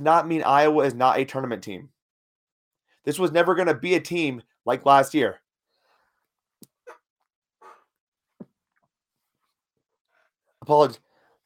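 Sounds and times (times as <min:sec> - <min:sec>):
speech: 0:00.0 - 0:02.0, 0:03.0 - 0:05.4, 0:10.7 - 0:11.0
person sneezing: 0:06.8 - 0:07.9.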